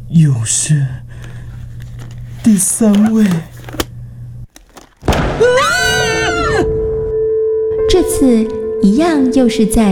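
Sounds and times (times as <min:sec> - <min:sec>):
speech: 0:00.1 - 0:01.2, 0:02.4 - 0:03.8, 0:05.4 - 0:05.7, 0:07.9 - 0:09.9
pistol being fired: 0:05.0 - 0:05.5
sustained tonal swell: 0:06.4 - 0:09.9.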